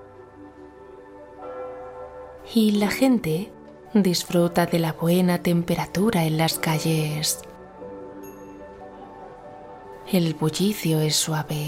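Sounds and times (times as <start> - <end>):
church bells ringing in a Mediterranean town: 1.4 - 5.2
speech: 2.5 - 7.5, 10.1 - 11.6.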